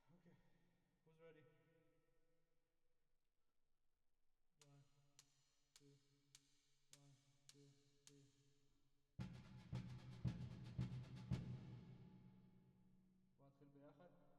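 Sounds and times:
drums with reverb: 9.2 - 12.6.

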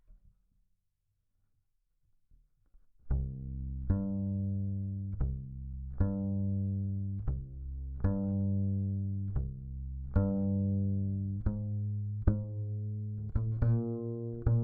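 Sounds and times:
bass guitar recorded by direct input: 3.1 - 14.6.

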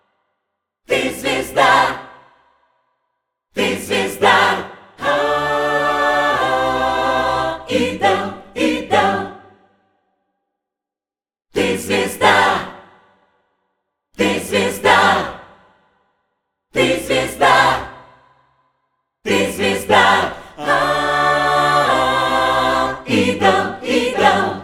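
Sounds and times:
choirs singing: 0.9 - 2.6, 3.6 - 9.8, 11.6 - 13.3, 14.2 - 15.9, 16.8 - 18.4, 19.3 - 24.6.

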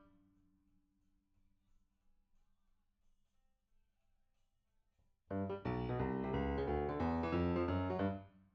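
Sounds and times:
rock and roll piano: 5.3 - 8.2.

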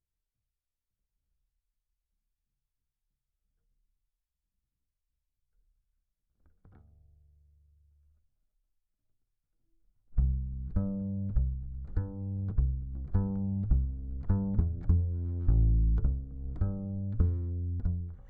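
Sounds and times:
bass guitar recorded by direct input: 10.1 - 18.2.

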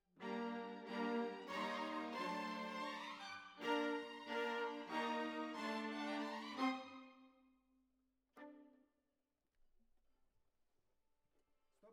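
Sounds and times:
violas playing: 0.2 - 7.2.

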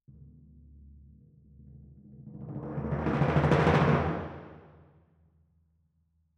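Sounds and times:
timpani: 2.2 - 4.8.

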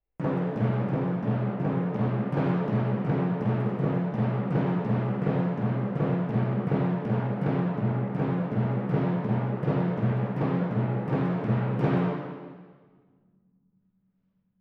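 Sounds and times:
timpani: 0.2 - 13.0.

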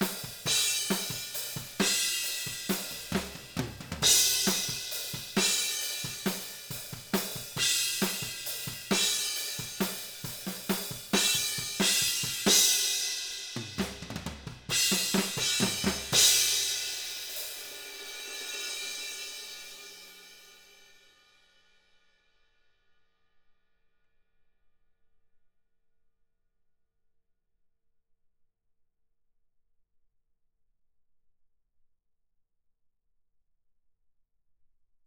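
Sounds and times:
open hi-hat: 0.0 - 20.8.

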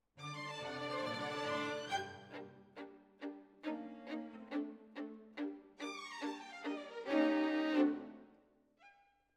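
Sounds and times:
violins: 0.2 - 8.4.

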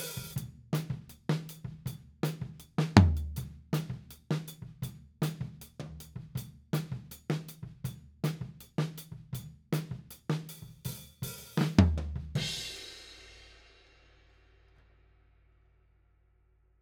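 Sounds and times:
tom drum beat: 0.0 - 13.1.

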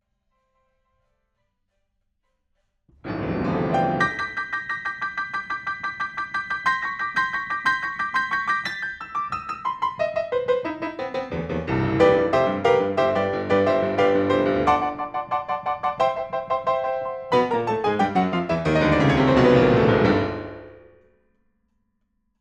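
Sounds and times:
rock and roll piano: 3.0 - 20.9.

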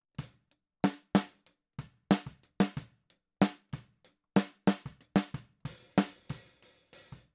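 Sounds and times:
snare drum: 0.9 - 1.4, 2.1 - 3.8, 4.4 - 7.2.

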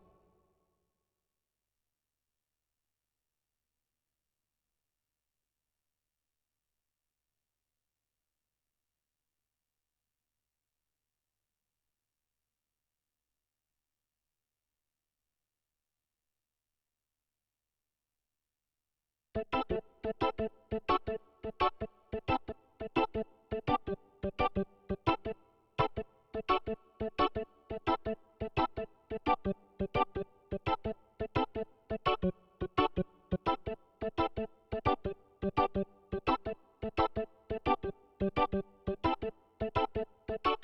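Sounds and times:
keyboard playing: 19.4 - 40.6.

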